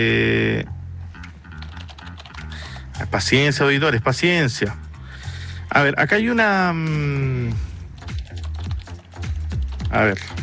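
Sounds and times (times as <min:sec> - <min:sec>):
speech: 0:00.0 - 0:00.8, 0:03.0 - 0:04.8, 0:05.7 - 0:07.7, 0:09.9 - 0:10.4
computer keyboard typing: 0:01.2 - 0:03.0, 0:06.8 - 0:10.4.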